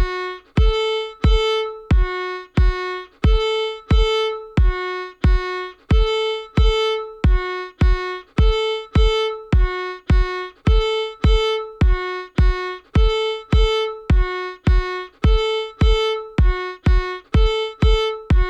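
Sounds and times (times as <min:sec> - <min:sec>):
fiddle playing intervals: 0:00.0 - 0:18.4.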